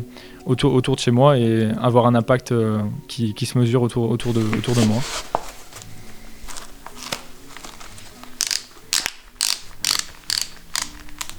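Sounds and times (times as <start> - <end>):
speech: 0.1 - 5.3
ratchet buckles clicking as sports shoes are tightened: 8.4 - 11.3.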